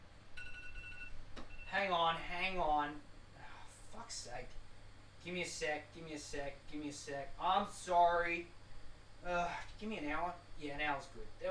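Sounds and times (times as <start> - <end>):
phone alarm going off: 0.4 - 1.7
speech: 1.7 - 3.1, 4.0 - 4.6, 5.2 - 8.6, 9.2 - 11.4.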